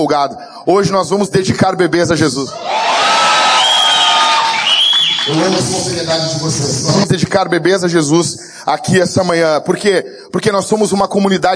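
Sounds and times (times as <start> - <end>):
speech: 0.0 - 3.2, 5.3 - 11.5
high whoops and shouts: 2.5 - 5.3
large audience cheering excitedly: 2.5 - 6.2.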